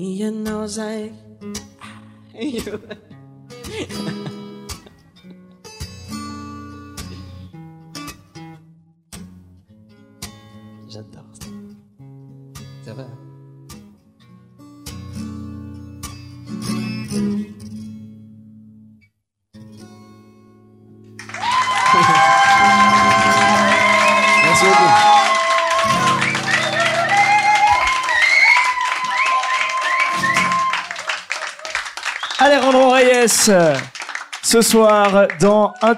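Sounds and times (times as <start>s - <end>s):
speech: 0.0s - 1.7s, 2.4s - 3.1s, 3.7s - 4.3s, 33.4s - 33.9s, 34.5s - 35.9s
laughter: 2.4s - 5.1s, 21.4s - 25.1s, 30.6s - 32.0s
audience applause: 21.2s - 35.9s.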